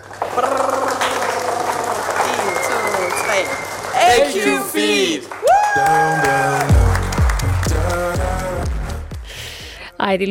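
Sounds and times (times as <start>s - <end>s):
applause and cheering: 0.0s - 9.0s
loud music: 5.8s - 9.8s.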